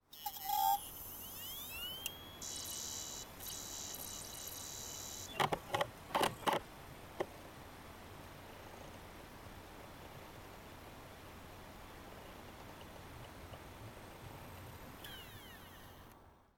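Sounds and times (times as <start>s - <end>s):
optical disk drive operating: 0.2s - 6.6s.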